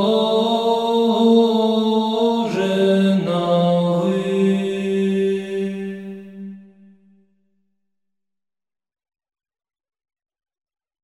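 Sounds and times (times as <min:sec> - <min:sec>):
monastery choir chanting a kontakion: 0:00.0 - 0:07.2.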